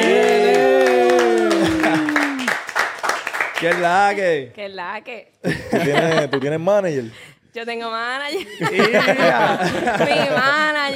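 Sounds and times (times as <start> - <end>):
studio audience applause: 0.0 - 4.1
speech: 3.6 - 10.9
laughter: 5.5 - 6.7, 8.4 - 10.9.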